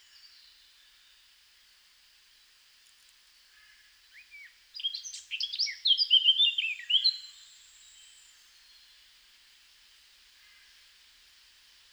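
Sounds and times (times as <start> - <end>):
Eurasian blackcap song: 4.1 - 8.8.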